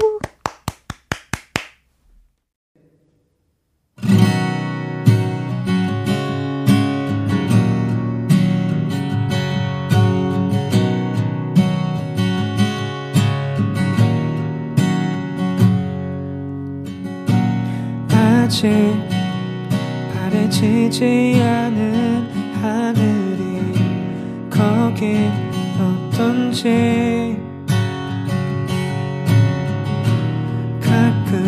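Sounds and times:
clapping: 0:00.0 - 0:01.8
acoustic guitar strumming a live song: 0:04.0 - 0:31.4
speech: 0:18.6 - 0:19.1, 0:20.5 - 0:23.1, 0:24.6 - 0:27.4.

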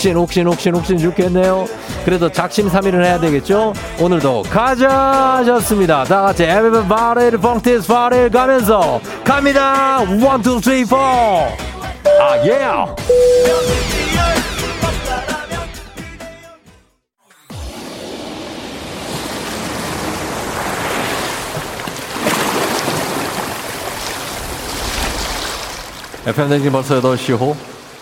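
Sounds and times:
speech: 0:00.0 - 0:14.4, 0:26.3 - 0:27.7
short burst of music: 0:12.1 - 0:14.8
ocean waves on a tropical beach: 0:17.8 - 0:26.3.

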